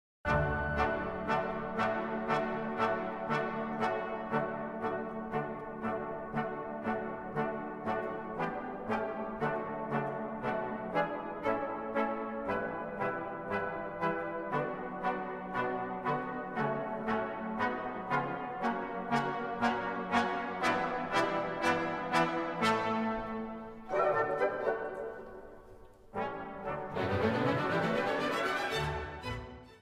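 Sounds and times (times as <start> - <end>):
piano: 0.2 - 29.8.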